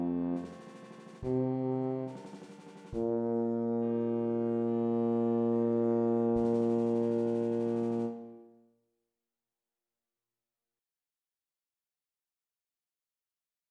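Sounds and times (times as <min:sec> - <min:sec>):
tuba: 0:00.0 - 0:08.6.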